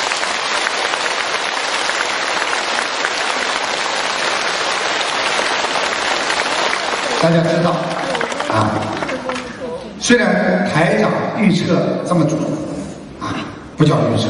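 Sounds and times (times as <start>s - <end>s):
sustained applause from a large audience: 0.0s - 10.0s
speech: 7.2s - 7.9s, 8.5s - 9.0s, 10.0s - 14.2s.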